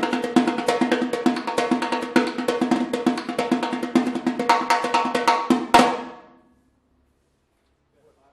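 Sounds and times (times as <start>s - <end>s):
repinique drum: 0.0s - 6.3s.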